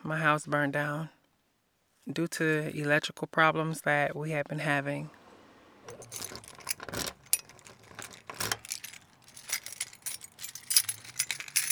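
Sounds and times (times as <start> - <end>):
speech: 0.0 - 1.2, 2.0 - 5.2, 5.9 - 7.1
keys unlocking a door: 5.9 - 11.7.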